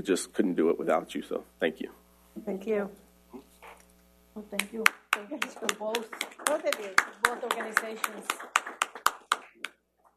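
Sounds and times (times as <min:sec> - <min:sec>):
speech: 0:00.0 - 0:03.0, 0:04.4 - 0:08.6
applause: 0:04.6 - 0:09.8.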